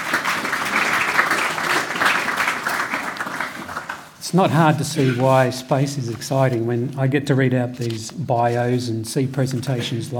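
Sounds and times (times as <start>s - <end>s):
audience applause: 0.0s - 4.2s
speech: 4.3s - 10.1s.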